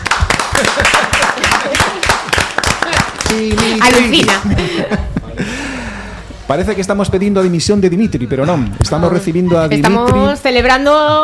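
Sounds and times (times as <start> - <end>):
crowd applauding: 0.0 - 4.4
laughter: 0.4 - 6.0
speech: 0.6 - 5.5, 6.5 - 11.2.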